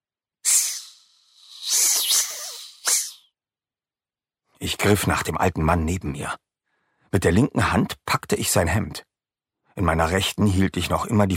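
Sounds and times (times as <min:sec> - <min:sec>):
snake hissing: 0:00.4 - 0:03.3
speech: 0:04.6 - 0:06.5, 0:07.1 - 0:09.1, 0:09.8 - 0:11.3.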